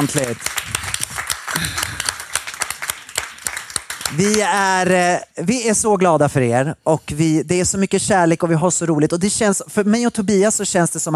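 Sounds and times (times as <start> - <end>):
speech: 0.0 - 0.9, 1.6 - 2.0, 4.1 - 11.1
crowd applause: 0.0 - 4.5.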